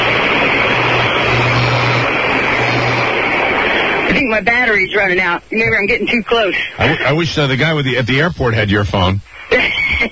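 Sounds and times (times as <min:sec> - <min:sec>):
cherry picker lift motor: 0:00.0 - 0:04.1
speech: 0:04.2 - 0:10.1.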